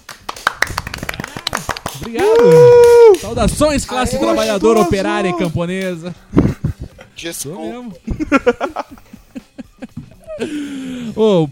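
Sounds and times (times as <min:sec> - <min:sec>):
hand clapping: 0:00.0 - 0:03.5, 0:04.4 - 0:06.0
speech: 0:02.0 - 0:06.5, 0:07.2 - 0:09.0, 0:10.4 - 0:11.5
laughter: 0:08.0 - 0:10.8.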